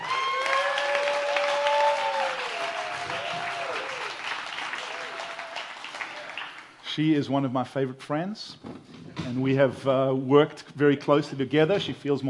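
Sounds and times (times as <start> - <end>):
church audience applauding a returning church administrator: 0.0 - 6.8
speech: 7.0 - 12.2.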